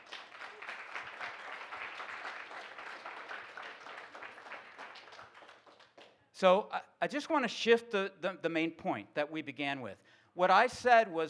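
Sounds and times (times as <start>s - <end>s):
audience applause: 0.0s - 6.1s
speech: 6.4s - 11.2s.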